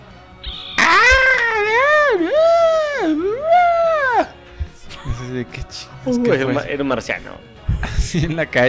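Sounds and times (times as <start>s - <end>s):
strange piercing scream in the street: 0.4s - 4.3s
speech: 5.3s - 7.5s, 8.1s - 8.6s.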